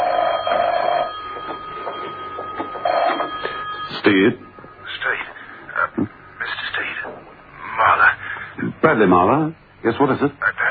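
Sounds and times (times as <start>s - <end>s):
telephone ringing: 0.0s - 7.0s
speech: 4.0s - 4.4s, 8.9s - 10.5s.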